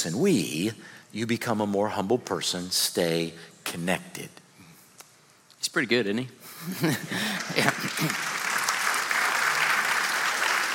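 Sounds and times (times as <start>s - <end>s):
speech: 0.0s - 4.4s, 5.6s - 8.4s
laughter: 6.5s - 8.7s
audience clapping: 7.1s - 10.7s.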